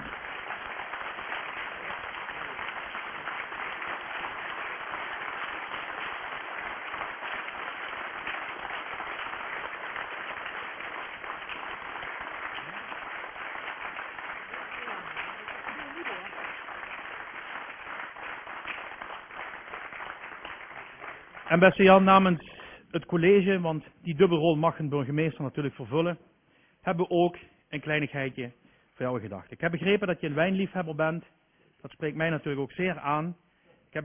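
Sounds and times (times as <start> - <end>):
audience applause: 0.0 - 22.2
speech: 21.5 - 34.0.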